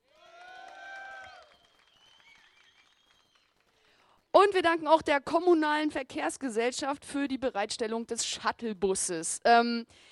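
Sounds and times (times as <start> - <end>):
audience applause: 0.0 - 4.1
speech: 4.4 - 10.0.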